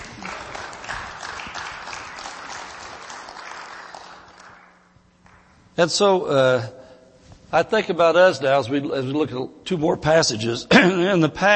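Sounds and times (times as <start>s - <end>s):
audience clapping: 0.0s - 5.6s
speech: 5.8s - 6.8s, 7.5s - 11.5s.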